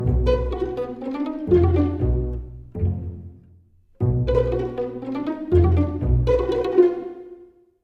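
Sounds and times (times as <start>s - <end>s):
jungle world music: 0.0s - 3.4s, 4.0s - 7.5s
pizzicato strings: 0.0s - 7.6s.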